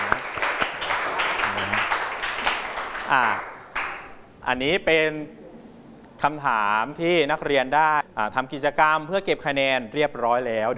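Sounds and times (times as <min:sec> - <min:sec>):
classroom applause: 0:00.0 - 0:04.1
speech: 0:03.1 - 0:03.5, 0:04.5 - 0:05.4, 0:06.2 - 0:10.7.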